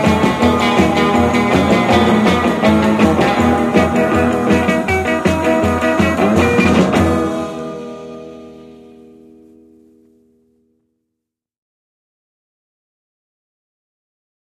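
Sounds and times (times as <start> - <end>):
Christmas song: 0.0 - 10.5.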